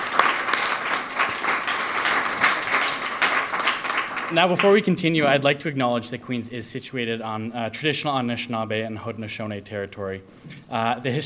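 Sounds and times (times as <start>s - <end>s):
round of applause: 0.0s - 4.8s
speech: 4.3s - 11.2s.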